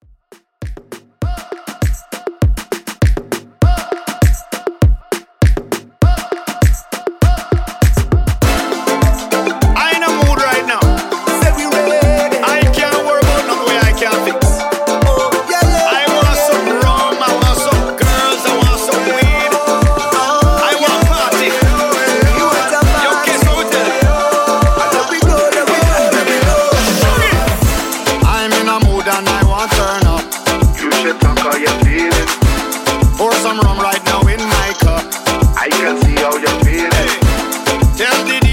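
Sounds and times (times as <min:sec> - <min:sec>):
reggae moombahton music: 0:00.0 - 0:38.5.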